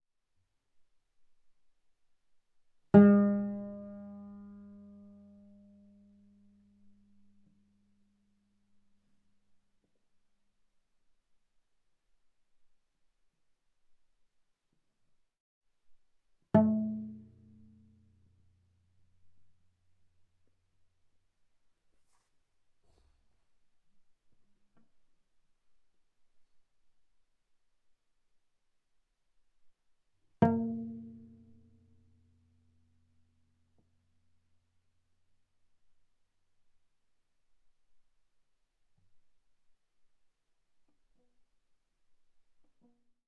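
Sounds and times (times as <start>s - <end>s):
viola pizzicato on the A string fortissimo: 3.0s - 5.7s, 16.6s - 18.1s, 30.4s - 31.6s.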